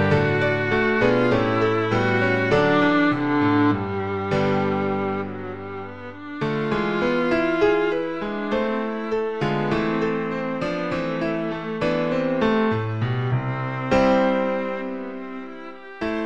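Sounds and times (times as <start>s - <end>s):
viola playing: 0.0s - 16.2s.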